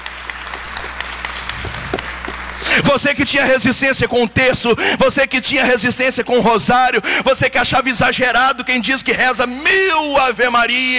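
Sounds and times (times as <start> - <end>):
congregation clapping during a worship service: 0.0 - 4.1
low steady hum: 0.0 - 10.9
speech: 2.8 - 10.9.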